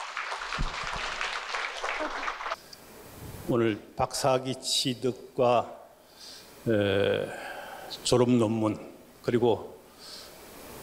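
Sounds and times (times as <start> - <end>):
audience applause: 0.0 - 2.6
speech: 3.5 - 5.8, 6.6 - 9.8.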